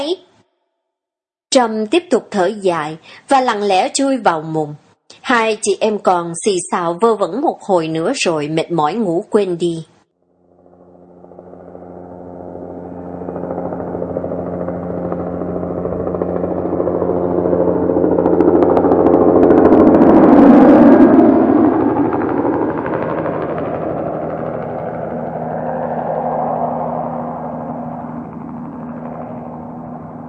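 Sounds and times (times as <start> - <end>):
speech: 0.0 - 0.3, 1.5 - 9.9
helicopter flying overhead: 1.7 - 30.2.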